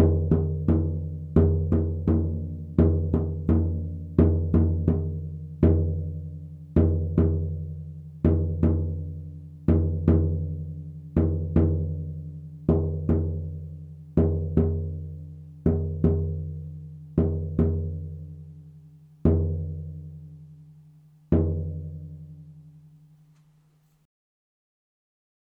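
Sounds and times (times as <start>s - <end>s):
drum: 0.0s - 18.4s, 19.2s - 20.3s, 21.3s - 22.2s.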